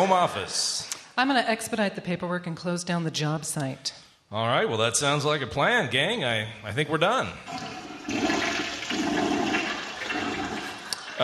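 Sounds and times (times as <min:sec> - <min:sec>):
speech: 0:00.0 - 0:08.4
toilet flushing: 0:07.4 - 0:11.2.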